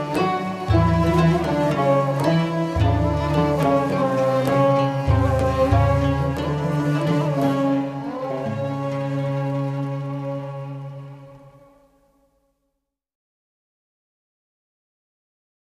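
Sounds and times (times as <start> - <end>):
ney flute playing a segah pesrev: 0.0 - 12.0.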